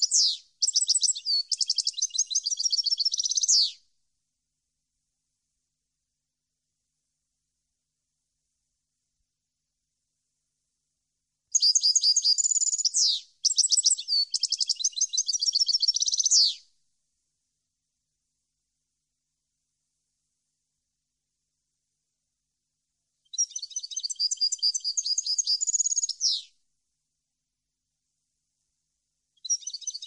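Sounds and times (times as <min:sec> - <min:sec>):
European goldfinch song: 0:00.0 - 0:03.7, 0:11.5 - 0:16.6, 0:23.3 - 0:26.5, 0:29.4 - 0:30.0.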